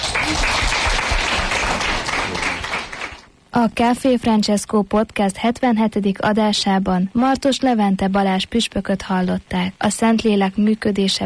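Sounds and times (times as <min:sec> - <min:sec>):
audience applause: 0:00.0 - 0:03.3
speech: 0:03.6 - 0:11.2.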